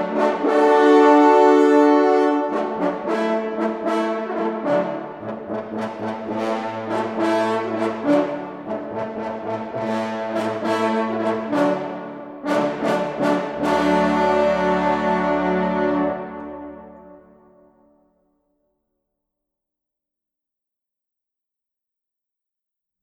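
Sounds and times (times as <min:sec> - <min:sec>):
hunting horn playing a hunting piece: 0:00.0 - 0:17.7.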